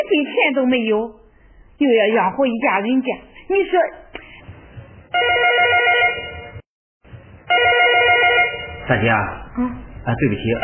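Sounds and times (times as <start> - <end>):
speech: 0.0 - 1.2, 1.8 - 4.1, 8.9 - 10.6
telephone ringing with bright electronic warbling tone: 5.1 - 6.6, 7.5 - 9.0.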